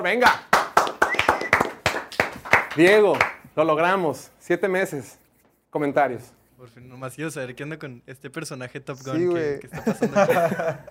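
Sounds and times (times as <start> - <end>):
speech: 0.0 - 0.5, 2.8 - 10.8
applause from a small number of hands: 0.1 - 3.6
laughter: 9.7 - 10.8.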